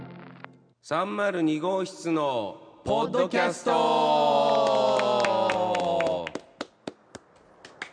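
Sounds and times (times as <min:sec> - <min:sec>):
speech: 0:00.9 - 0:04.5
applause: 0:04.6 - 0:07.9
one person clapping late: 0:04.9 - 0:07.9.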